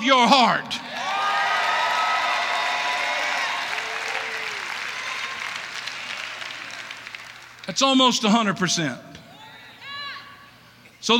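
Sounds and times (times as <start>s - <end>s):
speech: 0.0s - 0.9s, 7.7s - 9.2s
audience clapping: 0.8s - 7.9s.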